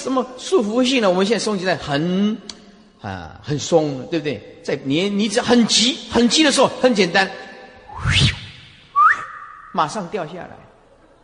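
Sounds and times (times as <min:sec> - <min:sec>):
speech: 0:00.0 - 0:07.4, 0:08.0 - 0:08.4, 0:09.8 - 0:10.7
person whistling: 0:07.9 - 0:09.8.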